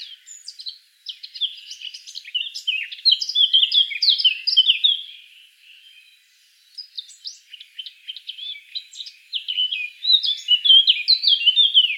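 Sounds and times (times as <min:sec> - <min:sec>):
Eurasian blackcap Sylvia atricapilla warbling song: 0:00.0 - 0:11.9.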